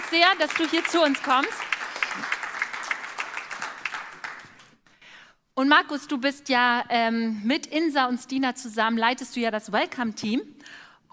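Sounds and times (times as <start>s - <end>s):
audience applause: 0.0s - 4.7s
speech: 0.1s - 2.4s, 5.6s - 11.1s.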